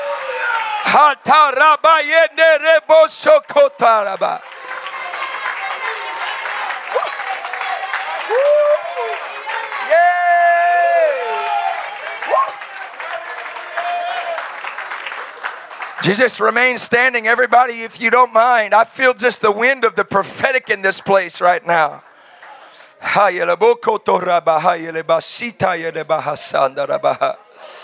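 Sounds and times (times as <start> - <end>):
audience clapping and cheering: 0.0 - 17.9, 20.1 - 23.4
speech: 0.9 - 4.5, 16.0 - 22.1, 23.1 - 27.8.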